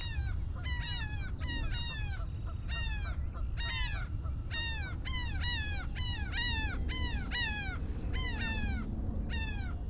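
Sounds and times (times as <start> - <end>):
laughing gull calls in Maryland: 0.2 - 9.8.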